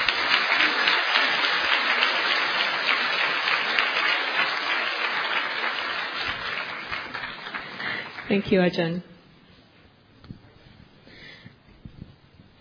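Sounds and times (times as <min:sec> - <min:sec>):
audience applause: 0:00.0 - 0:08.5
speech: 0:08.3 - 0:09.1.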